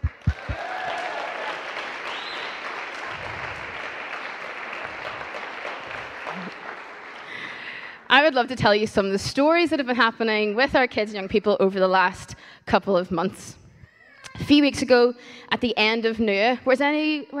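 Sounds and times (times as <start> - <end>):
audience applause: 0.0 - 8.1
speech: 8.2 - 13.6, 14.4 - 17.3.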